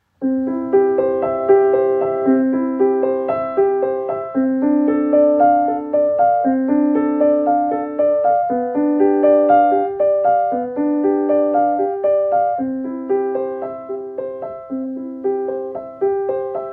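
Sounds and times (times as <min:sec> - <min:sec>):
prelude in C major: 0:00.1 - 0:16.7.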